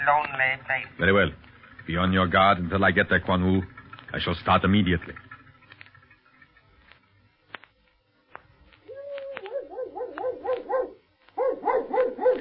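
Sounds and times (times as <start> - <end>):
speech: 0.0 - 5.2
dog barking: 9.6 - 12.3.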